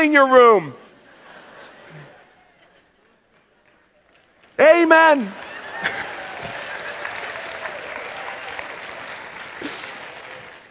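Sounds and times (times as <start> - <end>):
speech: 0.0 - 0.8, 4.6 - 6.0
audience clapping: 3.3 - 10.6.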